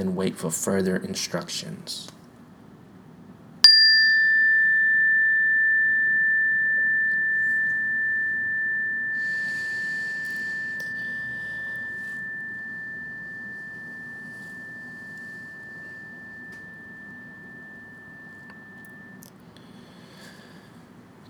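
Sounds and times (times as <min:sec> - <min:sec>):
speech: 0:00.0 - 0:02.2
meditation bell ringing: 0:03.6 - 0:20.7.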